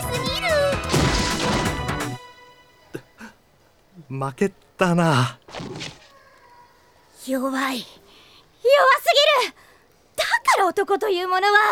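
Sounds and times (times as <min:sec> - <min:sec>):
loud crashing burst of a backfist strike: 0:00.8 - 0:02.1
short sharp whacks: 0:00.8 - 0:02.1, 0:05.5 - 0:06.1
speech: 0:04.1 - 0:05.9, 0:07.2 - 0:08.0, 0:08.6 - 0:09.6, 0:10.5 - 0:11.7.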